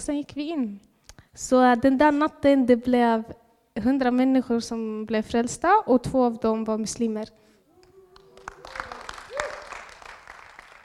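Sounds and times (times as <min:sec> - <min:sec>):
speech: 0:00.0 - 0:07.5
audience applause: 0:08.1 - 0:10.8.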